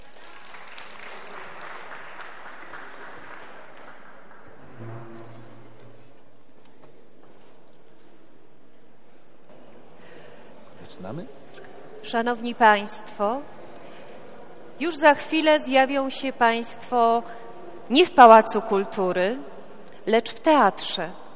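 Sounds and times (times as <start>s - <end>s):
audience applause: 0.0s - 5.7s
speech: 11.0s - 13.6s, 14.8s - 21.2s.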